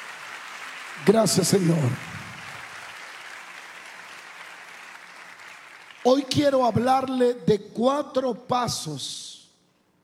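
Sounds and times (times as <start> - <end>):
audience applauding loudly: 0.0 - 6.7
speech: 1.0 - 2.1, 6.0 - 9.4.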